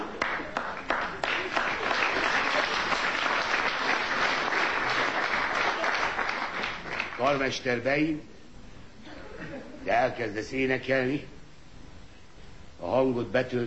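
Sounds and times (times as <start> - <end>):
large audience applause: 0.0 - 7.4
speech: 7.3 - 8.3, 9.8 - 11.4, 12.8 - 13.6.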